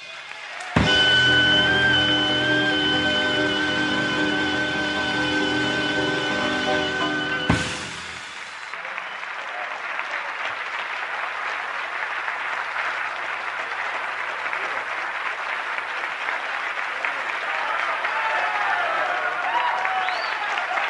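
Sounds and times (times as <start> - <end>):
audience applauding: 0.0 - 20.8.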